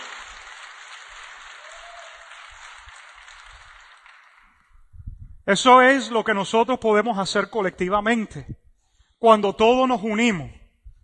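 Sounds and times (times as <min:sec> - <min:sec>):
audience applauding: 0:00.0 - 0:04.8
speech: 0:05.5 - 0:08.6, 0:09.2 - 0:10.6.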